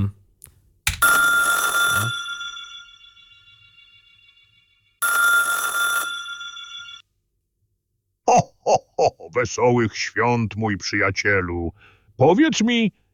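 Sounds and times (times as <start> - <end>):
telephone ringing: 1.0 - 7.0
speech: 9.4 - 13.0.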